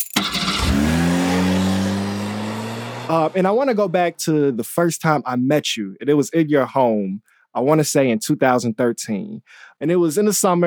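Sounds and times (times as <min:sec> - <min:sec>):
car engine revving as it is given some gas: 0:00.2 - 0:03.5
speech: 0:03.1 - 0:10.6.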